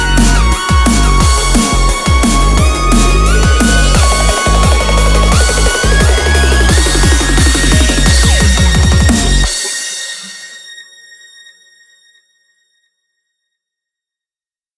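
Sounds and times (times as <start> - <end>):
drum and bass music: 0.0 - 10.9.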